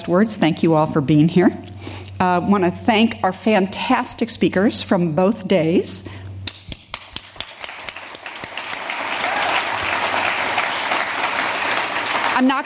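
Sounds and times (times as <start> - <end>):
speech: 0.0 - 6.2, 12.4 - 12.6
audience applause: 6.9 - 12.6.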